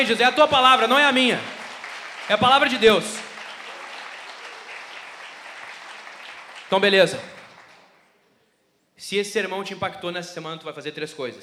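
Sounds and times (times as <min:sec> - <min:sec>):
speech: 0:00.0 - 0:01.6, 0:02.3 - 0:03.2, 0:06.7 - 0:07.4, 0:09.0 - 0:11.4
audience applause: 0:00.0 - 0:08.0.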